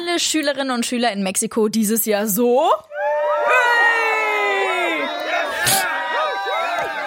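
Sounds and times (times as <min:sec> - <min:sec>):
speech: 0:00.2 - 0:03.2
students cheering: 0:02.9 - 0:07.0.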